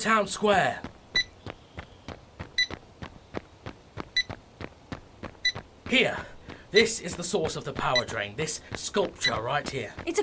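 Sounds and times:
speech: 0.0 - 0.9, 5.9 - 10.2
K2 EMF meter beeping: 1.2 - 1.4, 2.6 - 2.8, 4.2 - 4.4, 5.4 - 5.6.

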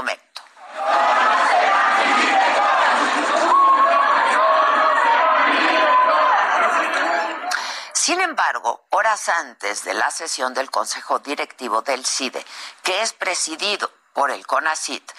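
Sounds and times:
protesters chanting a slogan in unison: 0.6 - 7.5
speech: 8.1 - 15.1.

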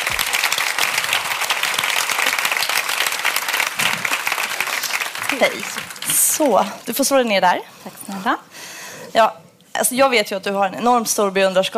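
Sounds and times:
audience applause: 0.0 - 6.9
speech: 5.4 - 8.5, 9.1 - 11.7.

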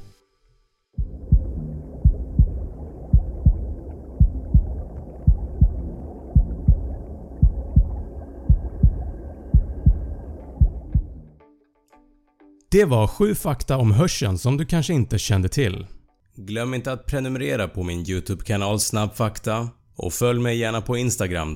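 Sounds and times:
blood flow inside womb: 1.0 - 11.4
mother's heartbeat inside womb: 1.0 - 11.4
speech: 12.7 - 21.5.

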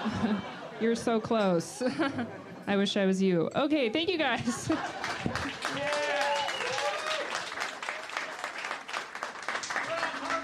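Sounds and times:
laughter: 0.0 - 2.6, 4.3 - 6.4
speech: 0.0 - 5.1
audience applause: 4.8 - 10.4.

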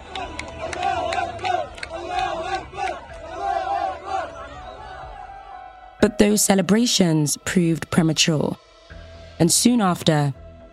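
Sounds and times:
crowds cheering in the street: 0.0 - 6.4
speech: 6.0 - 8.6, 9.4 - 10.7.

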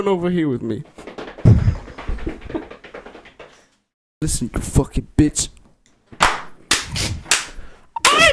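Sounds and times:
speech: 0.0 - 1.0, 4.2 - 5.6
loud high five slap: 6.2 - 8.2.

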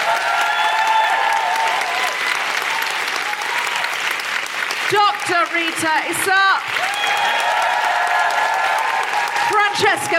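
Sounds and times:
audience applause: 0.0 - 10.1
speech: 5.6 - 7.4, 9.8 - 10.1.

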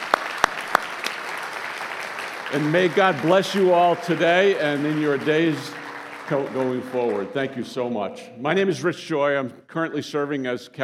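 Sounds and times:
audience applause: 0.0 - 7.9
speech: 2.5 - 10.8.

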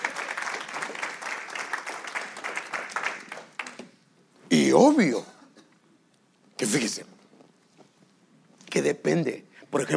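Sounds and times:
audience applauding: 0.0 - 3.9
speech: 4.5 - 5.3, 6.6 - 7.2, 8.8 - 9.9.

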